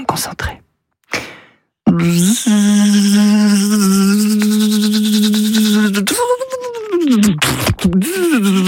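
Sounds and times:
speech: 0.2s - 0.7s, 2.0s - 3.2s
person imitating a mosquito buzz: 1.9s - 8.6s.

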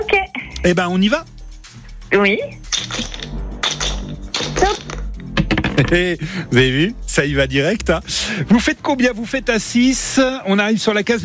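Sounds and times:
speech: 0.6s - 1.3s, 2.1s - 3.0s, 5.9s - 11.2s
dice clattering across a hard surface: 2.7s - 5.1s.

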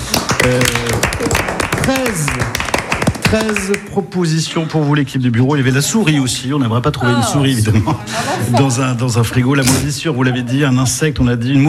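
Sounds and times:
studio audience applause: 0.0s - 3.9s
speech: 0.4s - 2.7s, 3.3s - 11.6s.

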